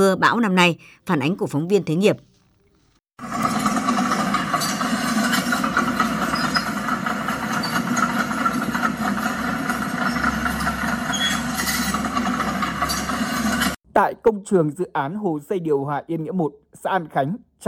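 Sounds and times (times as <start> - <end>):
speech: 0.0 - 2.3, 14.0 - 17.6
heavy construction machinery working: 3.2 - 13.8.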